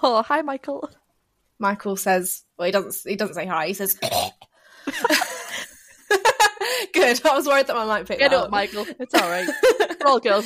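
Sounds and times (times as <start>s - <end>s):
speech: 0.0s - 1.0s, 1.6s - 5.3s, 6.8s - 10.4s
dog coughing and hacking: 4.0s - 4.4s
laughter: 4.9s - 7.5s, 8.2s - 10.4s.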